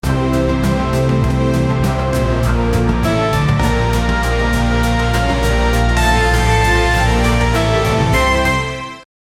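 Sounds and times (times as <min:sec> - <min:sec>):
musical intro: 0:00.0 - 0:09.1.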